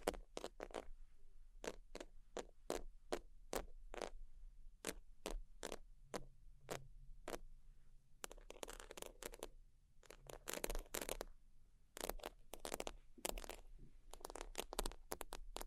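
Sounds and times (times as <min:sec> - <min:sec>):
sheets scratched and tapped: 0:00.0 - 0:00.9, 0:01.6 - 0:04.2, 0:04.8 - 0:07.4, 0:08.2 - 0:11.3, 0:12.0 - 0:15.6.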